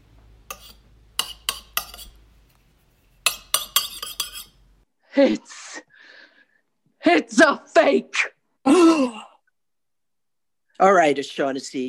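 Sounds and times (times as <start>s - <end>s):
knife scraping and chipping enamel off an object: 0.5s - 2.2s, 2.8s - 4.6s
speech: 5.2s - 5.6s, 7.0s - 9.3s, 10.8s - 11.8s.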